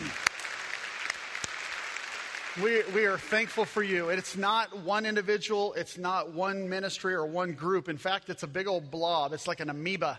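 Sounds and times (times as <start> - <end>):
audience applause: 0.0 - 4.1
speech: 2.6 - 10.1.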